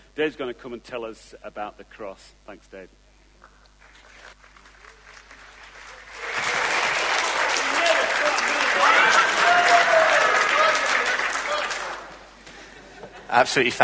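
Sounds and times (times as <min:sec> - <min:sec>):
speech: 0:00.2 - 0:03.0, 0:13.3 - 0:13.8
audience applause: 0:03.8 - 0:12.3
laughter: 0:12.4 - 0:13.5.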